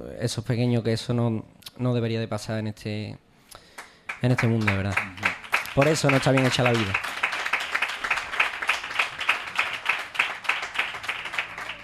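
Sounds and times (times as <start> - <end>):
speech: 0.2 - 3.2, 4.2 - 5.2, 5.8 - 7.1
rhythmic applause: 3.8 - 11.8.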